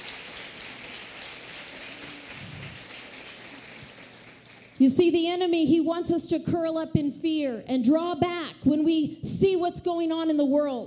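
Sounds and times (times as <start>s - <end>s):
audience applause: 0.0s - 4.8s
speech: 4.8s - 10.8s.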